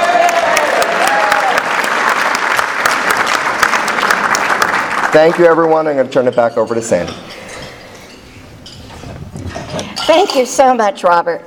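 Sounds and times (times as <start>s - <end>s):
audience applauding: 0.0s - 5.9s
speech: 5.2s - 7.4s, 10.1s - 11.4s.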